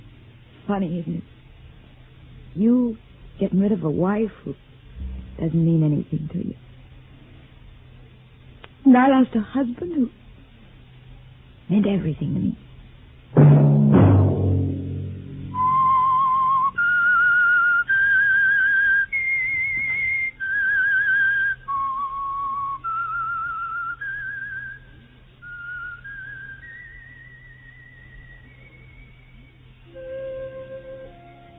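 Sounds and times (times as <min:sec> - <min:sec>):
speech: 0:00.7 - 0:01.4, 0:02.6 - 0:04.7, 0:05.4 - 0:06.6, 0:08.9 - 0:10.2, 0:11.7 - 0:12.7
brief low musical chord: 0:05.0 - 0:05.8, 0:13.5 - 0:16.5
whistled radio drama theme tune melody: 0:15.5 - 0:31.5.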